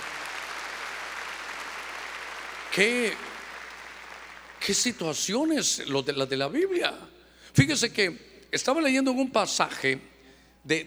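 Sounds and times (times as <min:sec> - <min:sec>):
loud clapping: 0:00.0 - 0:05.0
speech: 0:02.7 - 0:03.3, 0:04.6 - 0:10.8.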